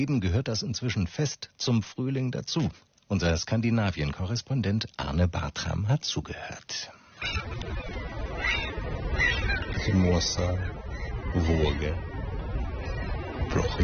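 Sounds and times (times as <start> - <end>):
speech: 0.0 - 12.1, 13.5 - 13.8
gulls crying over the coast: 7.2 - 13.8
coastal surf rushing: 7.3 - 13.8.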